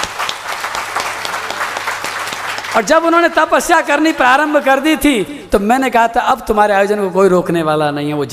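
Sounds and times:
audience applause: 0:00.0 - 0:04.8
speech: 0:02.8 - 0:08.3.

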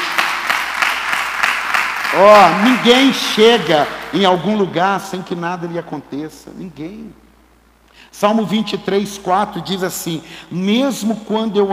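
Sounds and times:
audience applause: 0:00.0 - 0:04.3
speech: 0:02.1 - 0:07.2, 0:08.1 - 0:11.7.

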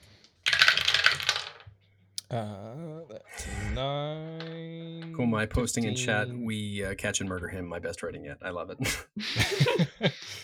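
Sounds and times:
four ten-sided dice rolled for a tabletop role-playing game: 0:00.4 - 0:01.7
speech: 0:02.3 - 0:10.4
laughter: 0:08.8 - 0:10.4.

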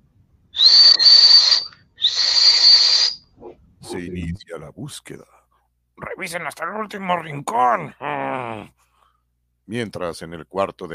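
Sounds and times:
ship's alarm whistle blasts: 0:00.6 - 0:03.3
speech: 0:04.0 - 0:05.4, 0:06.2 - 0:08.8, 0:09.7 - 0:10.9.

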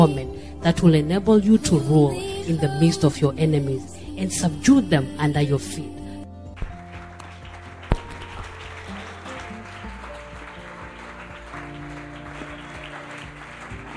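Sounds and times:
speech: 0:00.0 - 0:06.0
clapping: 0:06.6 - 0:13.9.

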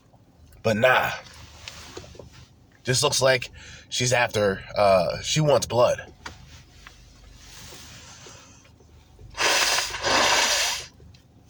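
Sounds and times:
speech: 0:00.6 - 0:01.3, 0:02.8 - 0:06.2
person blowing nose: 0:09.4 - 0:10.9.

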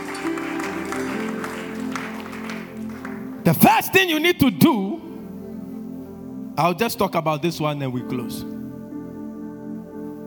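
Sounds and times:
audience clapping as an offering: 0:00.0 - 0:03.6
speech: 0:03.4 - 0:05.1, 0:06.6 - 0:08.5.

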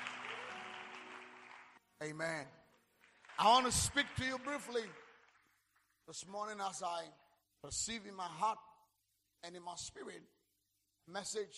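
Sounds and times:
crowd clapping hands: 0:00.0 - 0:07.4
speech: 0:02.0 - 0:02.6, 0:03.4 - 0:05.0, 0:06.1 - 0:08.7, 0:09.4 - 0:10.4, 0:11.1 - 0:11.5.

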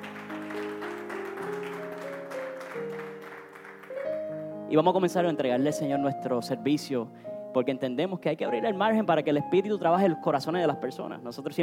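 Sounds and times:
audience applauding: 0:00.0 - 0:04.5
speech: 0:04.7 - 0:11.6.

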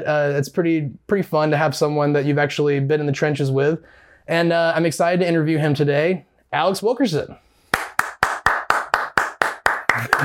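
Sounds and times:
speech: 0:00.0 - 0:07.4, 0:10.0 - 0:10.2
hand clapping: 0:07.7 - 0:10.2.

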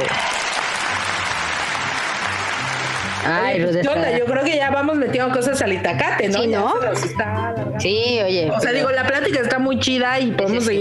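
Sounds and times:
deafening applause: 0:00.0 - 0:03.3
speech: 0:03.2 - 0:10.7.

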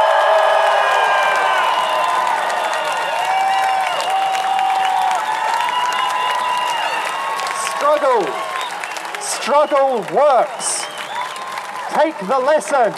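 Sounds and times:
rally crowd cheering and clapping: 0:00.0 - 0:12.9
speech: 0:08.0 - 0:08.4, 0:09.4 - 0:10.8, 0:11.9 - 0:12.9.

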